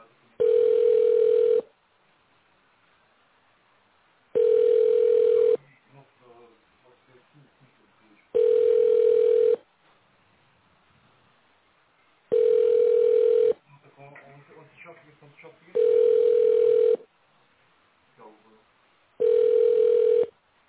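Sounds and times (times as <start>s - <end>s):
telephone ringback tone: 0.4s - 1.7s, 4.4s - 5.6s, 8.4s - 9.6s, 12.3s - 13.6s, 15.8s - 17.0s, 19.2s - 20.3s.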